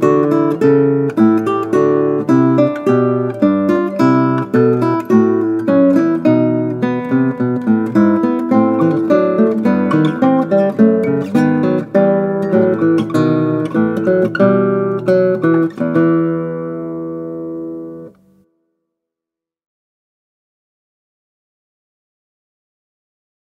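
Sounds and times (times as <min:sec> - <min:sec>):
classical guitar: 0:00.0 - 0:18.5.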